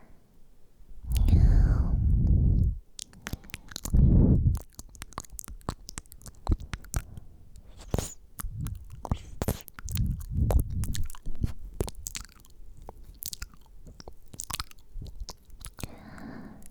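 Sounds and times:
person whispering: 0:01.0 - 0:04.7, 0:07.7 - 0:11.6
chewing and biting of food in an ASMR tasting: 0:01.0 - 0:16.6.

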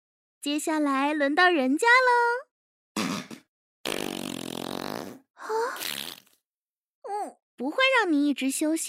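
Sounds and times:
speech: 0:00.4 - 0:02.5, 0:07.2 - 0:08.8
loud buzzy farts: 0:03.0 - 0:06.4.

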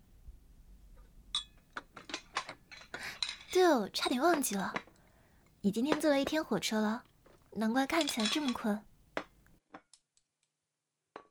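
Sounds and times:
bowls and chopsticks set down after a meal: 0:01.4 - 0:05.0, 0:07.8 - 0:08.8
speech: 0:03.6 - 0:04.8, 0:05.6 - 0:08.9.

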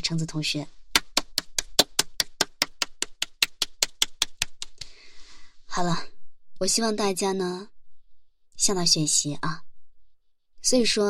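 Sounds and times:
speech: 0:00.1 - 0:00.8, 0:05.8 - 0:07.7, 0:08.6 - 0:09.7, 0:10.6 - 0:11.0
classroom applause: 0:00.9 - 0:05.0.

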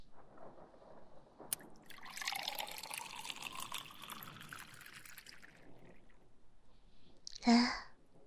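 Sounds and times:
water being poured into a cup: 0:01.5 - 0:06.2.

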